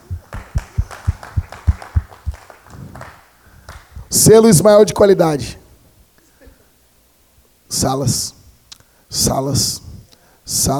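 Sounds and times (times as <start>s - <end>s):
person clapping hands: 0.0s - 4.0s
speech: 4.2s - 5.6s, 7.8s - 8.4s, 9.1s - 9.9s, 10.5s - 10.7s.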